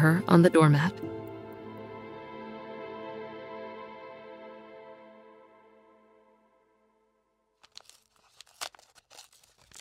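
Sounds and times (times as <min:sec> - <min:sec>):
speech: 0:00.0 - 0:01.1
dirty paper envelope torn open: 0:07.6 - 0:09.7.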